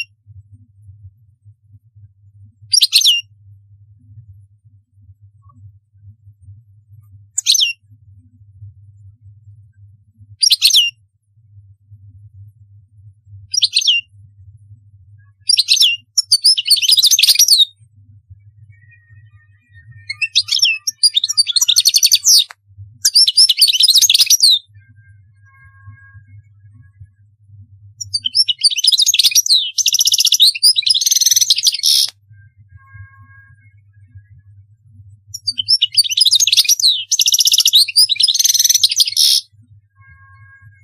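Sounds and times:
faint low hum: 0.0s - 40.8s
European goldfinch twittering: 20.1s - 24.6s, 28.0s - 32.1s, 35.4s - 39.4s.

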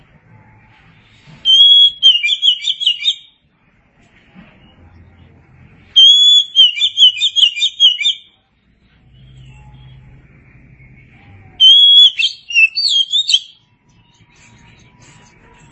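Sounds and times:
oriental magpie-robin song: 1.4s - 3.3s, 6.0s - 8.3s, 11.0s - 14.2s.

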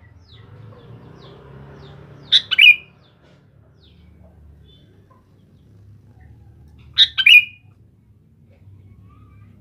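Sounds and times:
sooty-headed bulbul song: 0.0s - 3.2s, 3.8s - 7.8s.

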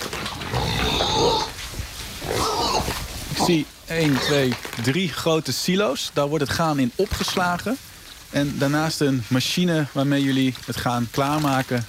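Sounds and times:
pigs grunting and squealing in a pig barn: 0.0s - 1.6s, 2.2s - 4.5s
speech: 3.5s - 11.8s.

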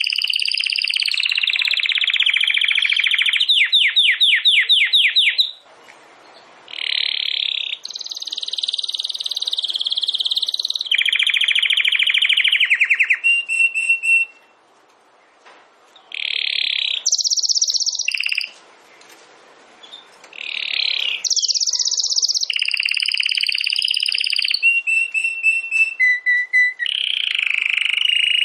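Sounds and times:
domestic canary trilling song: 0.0s - 5.6s, 6.2s - 14.6s, 16.0s - 19.2s, 19.8s - 28.4s.

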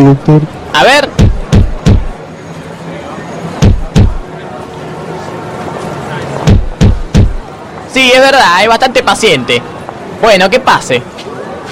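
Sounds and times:
speech: 0.0s - 1.3s, 8.0s - 11.6s
patient knocking on a doctor's office door: 3.6s - 4.2s, 6.5s - 7.4s.

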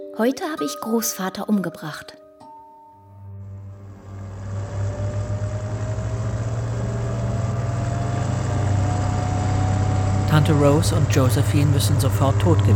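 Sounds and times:
speech: 0.2s - 2.2s, 10.3s - 12.7s
thin rising tone: 2.7s - 12.7s
car engine droning while driving: 3.3s - 12.7s.

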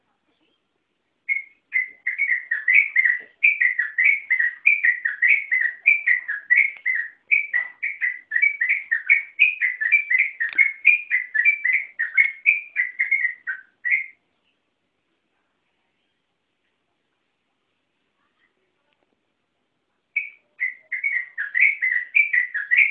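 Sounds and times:
yellow-vented bulbul song of warbled whistled notes: 1.2s - 14.2s, 20.1s - 22.9s.

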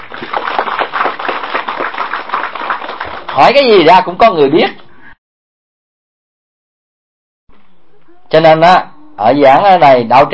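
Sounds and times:
crowd applauding: 0.0s - 3.8s
speech: 3.4s - 4.8s, 8.4s - 10.3s.

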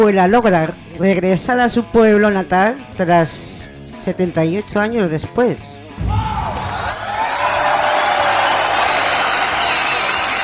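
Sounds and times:
speech: 0.0s - 6.2s
scattered whoops from the crowd: 6.0s - 10.4s
crowd applause: 6.1s - 10.4s.

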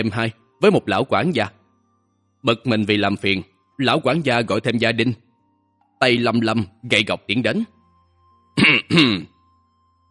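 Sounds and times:
speech: 0.0s - 1.6s, 2.4s - 5.2s, 6.0s - 7.8s, 8.6s - 9.3s
soft dry cough and throat clearing from a foul stench: 8.6s - 9.4s.

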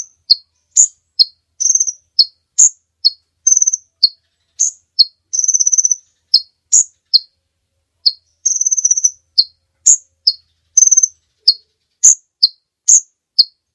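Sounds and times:
bird giving buzzy chattering bursts: 0.0s - 7.3s, 8.0s - 13.6s.

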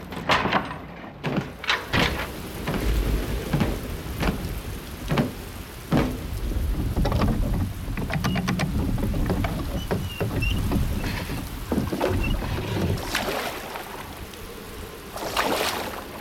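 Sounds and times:
wooden knocks: 0.1s - 13.0s
oars rowing a small boat through water: 1.2s - 16.1s.

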